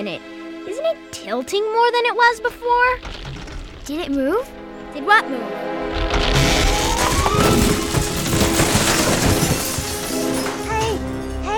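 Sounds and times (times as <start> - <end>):
speech: 0.0 - 3.3, 3.9 - 6.2
treehouse crashing down to the ground: 2.8 - 4.0, 5.8 - 11.3.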